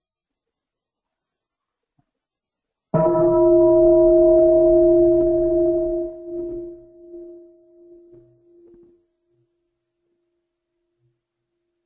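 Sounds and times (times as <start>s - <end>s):
large bell rung to call retreat participants: 3.0s - 8.2s.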